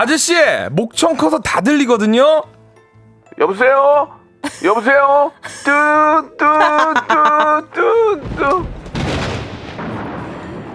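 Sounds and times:
speech: 0:00.0 - 0:02.6, 0:03.4 - 0:09.2
laughter: 0:04.4 - 0:08.5
thunder sound effect: 0:08.2 - 0:10.7.

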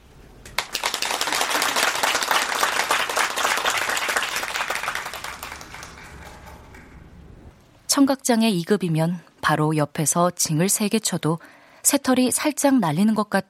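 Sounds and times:
applause breaking out: 0:00.5 - 0:07.1
speech: 0:08.0 - 0:13.4.

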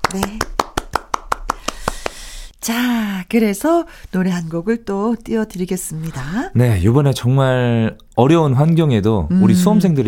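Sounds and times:
single person clapping hands: 0:00.0 - 0:02.2
speech: 0:00.1 - 0:00.5, 0:02.6 - 0:10.0.

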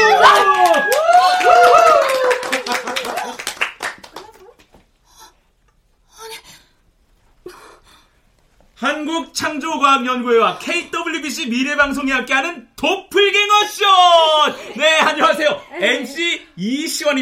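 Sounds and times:
audience clapping: 0:00.0 - 0:04.7
speech: 0:09.4 - 0:17.2.

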